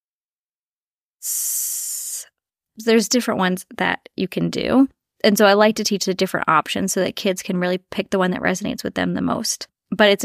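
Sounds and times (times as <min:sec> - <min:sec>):
speech: 0:01.2 - 0:01.4, 0:02.8 - 0:10.2
person exhaling a long hiss through the mouth imitating a snake: 0:01.2 - 0:02.3.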